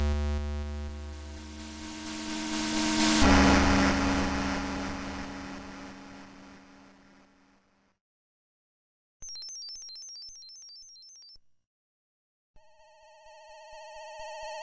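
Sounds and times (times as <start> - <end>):
PSG chiptune music: 0.1 - 5.8.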